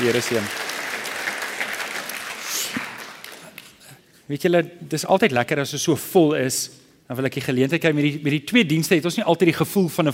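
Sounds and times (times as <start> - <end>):
speech: 0.0 - 0.7, 4.3 - 10.1
audience applause: 0.0 - 3.7.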